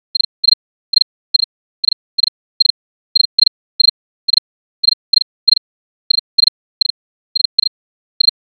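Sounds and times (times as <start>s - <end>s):
cricket chirping: 0.2s - 8.4s.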